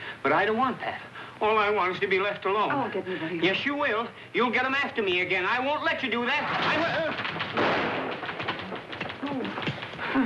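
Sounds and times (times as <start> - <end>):
speech: 0.2 - 7.4
gunshot: 6.6 - 9.8.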